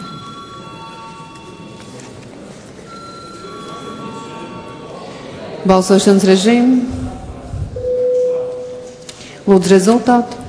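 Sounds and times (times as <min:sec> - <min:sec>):
parliament chamber vote bell ringing: 0:00.0 - 0:02.0, 0:02.9 - 0:05.2, 0:07.8 - 0:09.0
speech: 0:05.6 - 0:07.0, 0:09.5 - 0:10.4.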